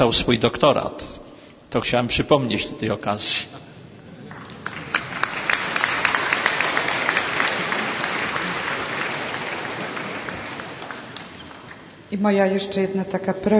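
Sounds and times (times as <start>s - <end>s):
speech: 0.0s - 3.6s, 12.1s - 13.5s
audience applause: 4.2s - 11.9s.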